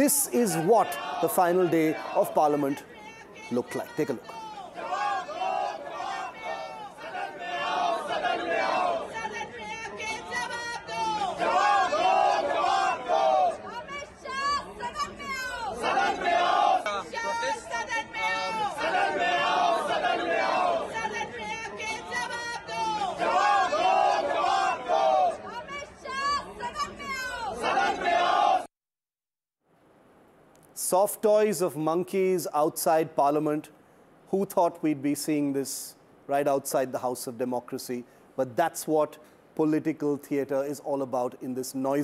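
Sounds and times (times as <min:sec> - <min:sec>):
speech: 0:00.0 - 0:04.9, 0:30.9 - 0:42.0
protesters chanting political slogans: 0:00.0 - 0:28.7.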